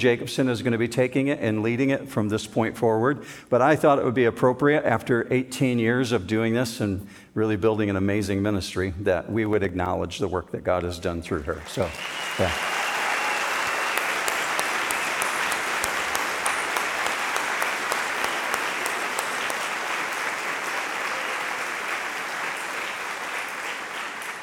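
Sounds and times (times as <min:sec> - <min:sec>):
speech: 0:00.0 - 0:12.8
audience applause: 0:11.4 - 0:24.4.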